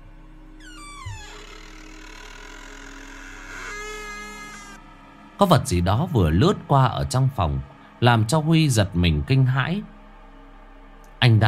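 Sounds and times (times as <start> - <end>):
old door hinge creaking as door opens slowly: 0.6 - 4.8
speech: 5.4 - 9.9, 11.2 - 11.4.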